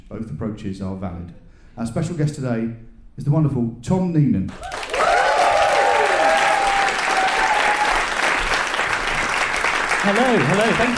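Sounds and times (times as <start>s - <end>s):
speech: 0.1s - 4.8s, 10.0s - 10.9s
live audience applause: 4.5s - 10.9s.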